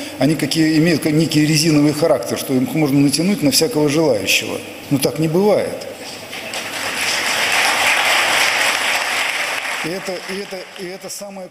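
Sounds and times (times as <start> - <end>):
speech: 0.2 - 6.2, 9.8 - 11.4
audience applause: 6.5 - 11.2.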